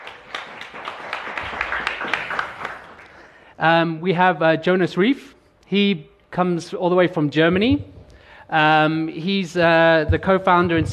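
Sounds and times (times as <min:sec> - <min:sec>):
audience applause: 0:00.0 - 0:03.4
speech: 0:03.6 - 0:07.9, 0:08.5 - 0:10.9.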